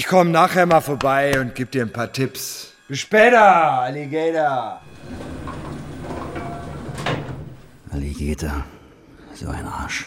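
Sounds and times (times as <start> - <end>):
speech: 0.0 - 5.3, 7.9 - 8.8, 9.4 - 10.0
door sliding open: 4.8 - 8.0.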